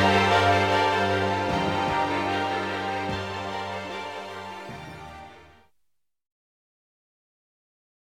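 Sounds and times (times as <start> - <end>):
battle music: 0.0 - 5.7.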